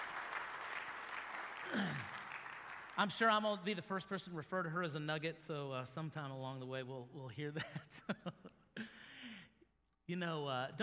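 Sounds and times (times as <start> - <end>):
audience clapping: 0.0 - 3.6
speech: 3.0 - 8.9, 10.1 - 10.8.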